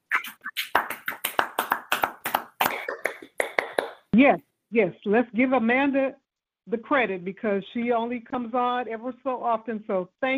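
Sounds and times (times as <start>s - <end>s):
round of applause hand claps: 0.2s - 4.1s
speech: 4.2s - 10.3s.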